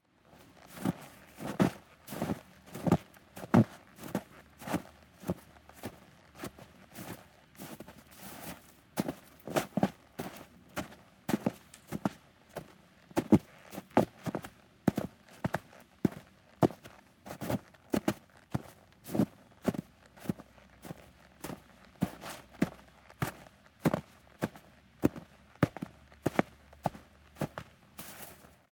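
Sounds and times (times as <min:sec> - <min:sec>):
footsteps of boots in snow: 0:00.3 - 0:28.7.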